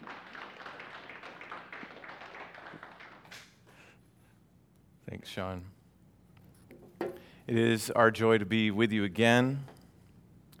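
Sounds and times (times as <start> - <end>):
audience clapping: 0.0 - 3.7
speech: 5.1 - 5.8, 7.5 - 9.7.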